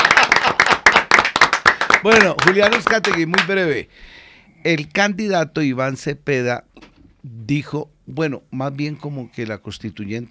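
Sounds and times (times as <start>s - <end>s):
crowd applause at a political event: 0.0s - 3.5s
speech: 2.0s - 10.2s.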